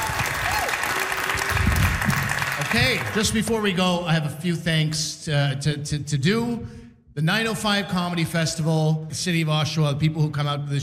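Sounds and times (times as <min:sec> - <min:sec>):
crowd clapping for a comedian at a comedy festival show: 0:00.0 - 0:03.7
speech: 0:02.7 - 0:10.8.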